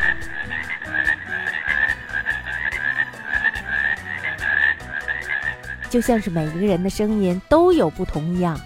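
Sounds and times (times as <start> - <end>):
male frogs croaking in chorus: 0.0 - 6.8
speech: 5.9 - 8.6.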